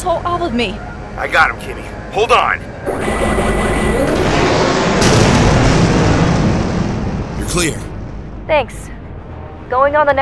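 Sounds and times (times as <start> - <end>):
speech: 0.1 - 4.1, 7.5 - 7.9, 8.5 - 9.0, 9.7 - 10.2
blaster fire in a space fighter dogfight: 2.9 - 7.6
explosions in a space fighter dogfight: 4.1 - 7.9.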